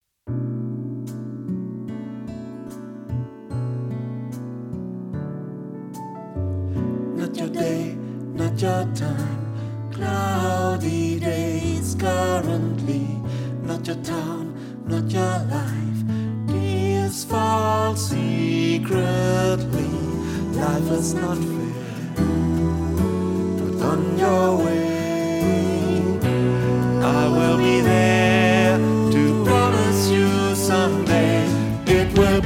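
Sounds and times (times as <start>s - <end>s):
bass: 3.1s - 5.1s, 6.0s - 7.2s, 7.9s - 32.4s.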